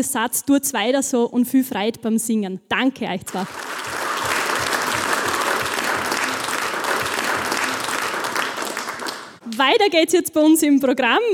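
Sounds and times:
speech: 0.0s - 4.0s, 9.6s - 11.3s
audience applause: 3.3s - 9.4s.

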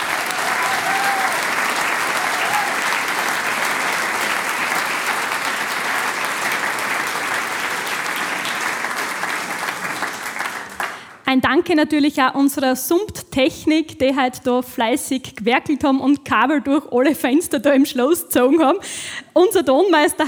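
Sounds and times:
audience applause: 0.0s - 11.2s
speech: 11.3s - 20.2s.

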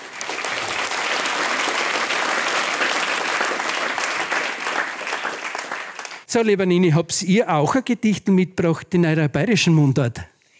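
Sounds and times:
audience applause: 0.0s - 6.3s
speech: 6.3s - 10.3s.

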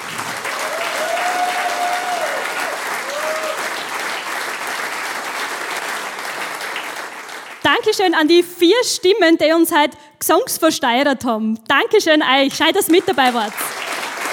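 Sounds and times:
applause: 0.0s - 8.0s, 12.6s - 14.3s
speech: 7.7s - 13.8s.

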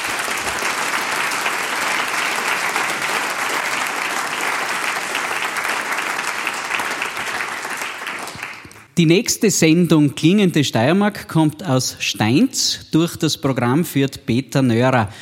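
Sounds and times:
crowd big applause: 0.0s - 8.9s
speech: 9.0s - 15.2s.

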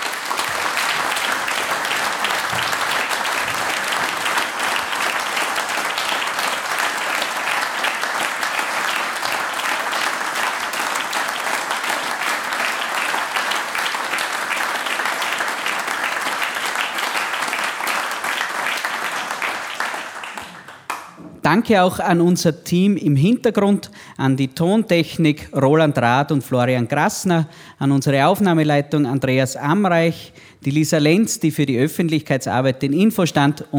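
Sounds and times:
audience applause: 0.0s - 21.2s
speech: 21.5s - 33.7s.

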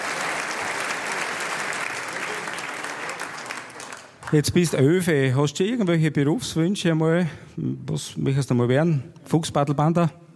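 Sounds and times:
audience applause: 0.0s - 4.5s
speech: 4.3s - 10.2s.

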